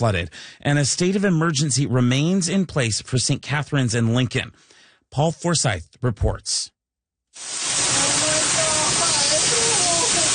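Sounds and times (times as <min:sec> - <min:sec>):
speech: 0:00.0 - 0:06.8, 0:07.4 - 0:07.9
floodwater rushing towards a St. Catharines, Ontario property: 0:07.4 - 0:10.3.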